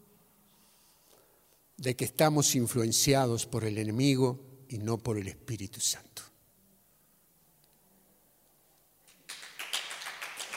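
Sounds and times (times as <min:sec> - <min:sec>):
speech: 0:01.8 - 0:06.3
audience applause: 0:09.3 - 0:10.5.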